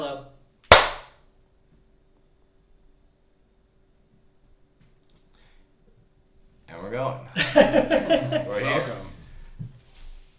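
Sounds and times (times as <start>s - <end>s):
single hand clap: 0.7s - 1.2s
laughter: 7.4s - 9.3s.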